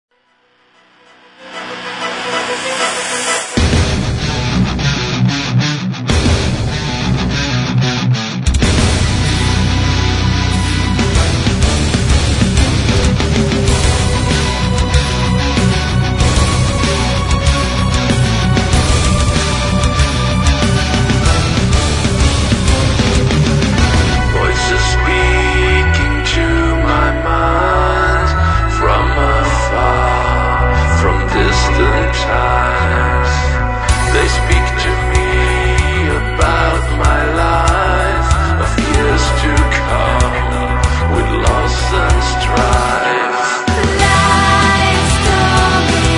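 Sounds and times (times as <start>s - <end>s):
symphonic metal music: 0.1s - 46.1s.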